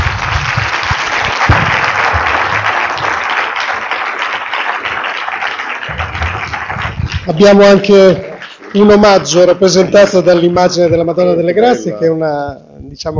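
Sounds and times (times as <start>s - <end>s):
audience applause: 0.0s - 9.6s
speech: 7.4s - 13.1s.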